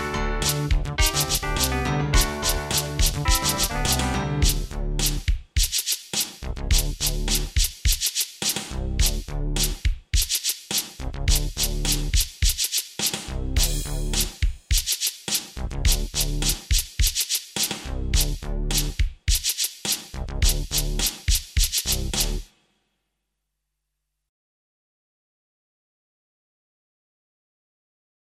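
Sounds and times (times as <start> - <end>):
instrumental music: 0.0 - 22.6.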